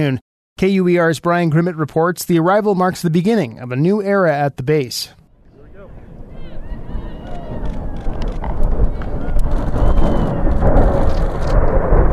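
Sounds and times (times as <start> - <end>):
speech: 0.0 - 5.2
two F-35 fighter jets flying over: 5.5 - 12.1.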